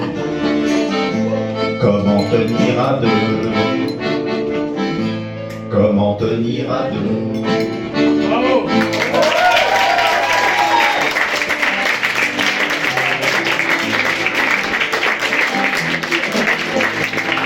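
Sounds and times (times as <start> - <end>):
song: 0.0 - 17.4
speech: 1.8 - 4.0, 5.8 - 7.9
audience applause: 8.8 - 17.4
audience cheering: 8.9 - 14.7.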